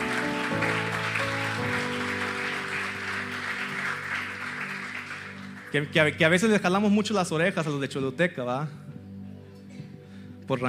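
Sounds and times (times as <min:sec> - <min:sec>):
audience applause: 0:00.0 - 0:05.9
speech: 0:05.7 - 0:08.8, 0:10.5 - 0:10.6.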